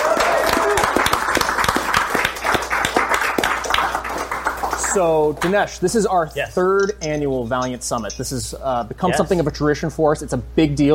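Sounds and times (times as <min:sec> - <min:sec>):
audience applause: 0:00.0 - 0:05.6
speech: 0:05.0 - 0:10.9.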